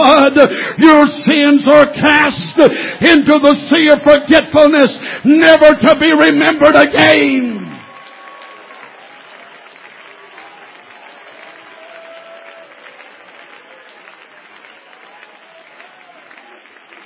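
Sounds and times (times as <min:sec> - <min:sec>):
speech: 0:00.3 - 0:07.6
audience applause: 0:06.6 - 0:17.0.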